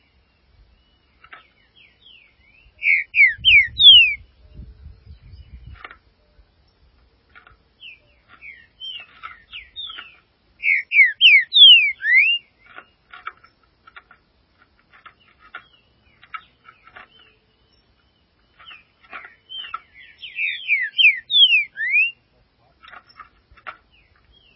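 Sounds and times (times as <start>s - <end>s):
green-winged saltator song: 2.8s - 4.2s, 10.6s - 12.5s, 20.3s - 22.2s.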